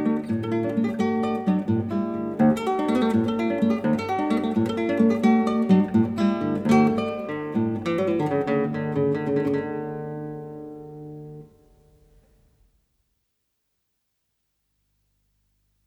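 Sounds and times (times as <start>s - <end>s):
keyboard sonata in D major arranged for guitar: 0.0s - 12.2s.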